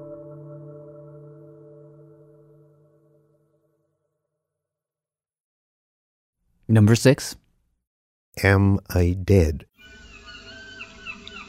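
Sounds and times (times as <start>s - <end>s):
speech: 6.7s - 7.4s, 8.4s - 10.0s
seagulls calling: 9.8s - 11.4s.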